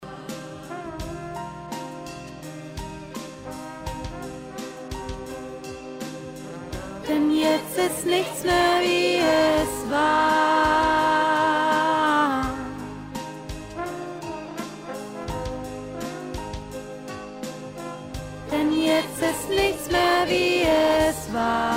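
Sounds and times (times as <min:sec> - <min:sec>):
middle choir voice singing: 0:00.0 - 0:01.4, 0:05.2 - 0:13.1, 0:18.5 - 0:21.7.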